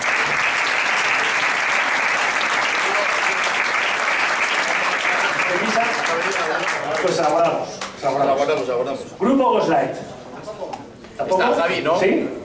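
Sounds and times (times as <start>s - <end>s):
audience applause: 0.0s - 7.5s
speech: 7.1s - 10.2s, 11.2s - 12.4s.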